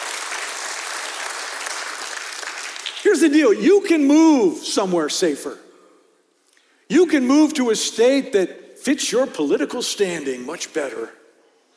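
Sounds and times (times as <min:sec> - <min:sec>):
audience clapping: 0:00.0 - 0:03.4
speech: 0:03.0 - 0:05.6, 0:07.1 - 0:11.2.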